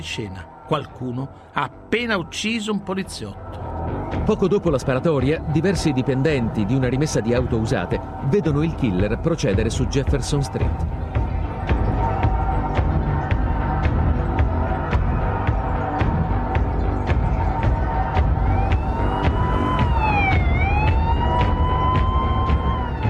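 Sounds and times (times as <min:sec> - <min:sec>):
speech: 0:00.0 - 0:11.2
police car sirens wailing speeding past the Texas Movie Theater: 0:04.9 - 0:23.0.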